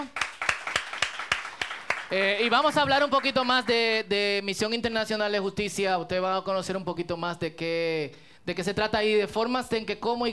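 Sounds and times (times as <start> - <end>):
applause: 0.0 - 3.8
speech: 2.1 - 10.3.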